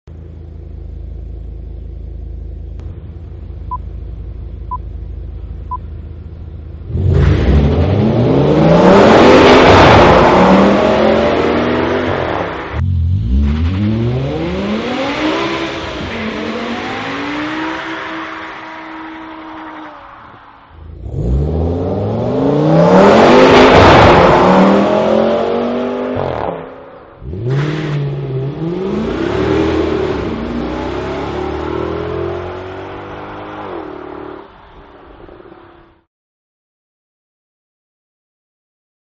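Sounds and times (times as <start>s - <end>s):
E63 M5 RS6 cars accelerating: 6.8s - 36.0s.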